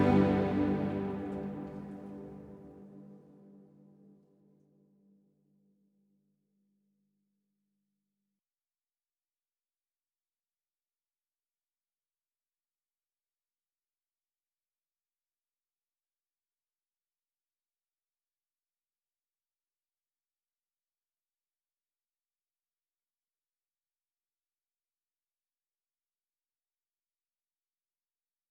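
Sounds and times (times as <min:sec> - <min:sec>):
ambient string melody loop in A minor: 0:00.0 - 0:02.9.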